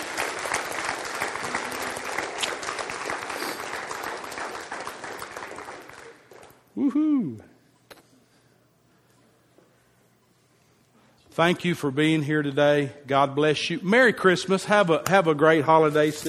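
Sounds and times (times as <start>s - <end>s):
audience clapping hands: 0.0s - 6.7s
speech: 6.8s - 7.5s, 11.4s - 16.2s.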